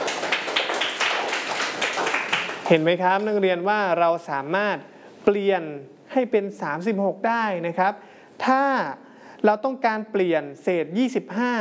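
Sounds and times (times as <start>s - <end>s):
classroom clapping for a student: 0.0s - 3.4s
speech: 2.7s - 11.5s.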